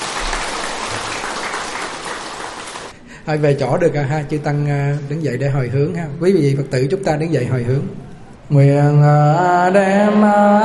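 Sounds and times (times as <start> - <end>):
audience applause: 0.0 - 3.0
speech: 3.2 - 10.6.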